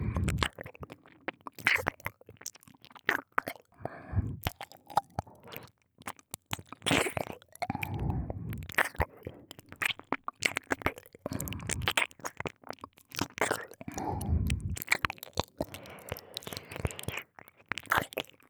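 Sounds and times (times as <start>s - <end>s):
ear licking: 0.0s - 1.0s, 3.1s - 5.7s, 6.6s - 12.5s, 13.1s - 18.4s.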